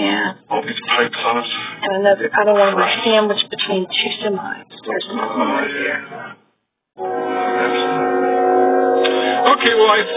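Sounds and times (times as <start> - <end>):
speech: 1.3 - 6.3, 9.6 - 10.1
train horn of a train with two engines: 7.0 - 10.1.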